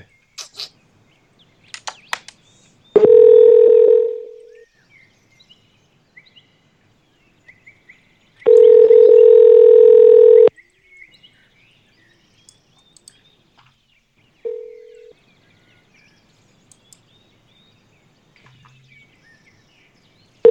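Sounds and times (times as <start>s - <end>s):
faint clicks: 1.7s - 2.7s, 12.4s - 13.8s, 16.6s - 17.2s
phone line ringback tones: 3.0s - 4.6s, 8.5s - 10.5s, 14.5s - 15.1s.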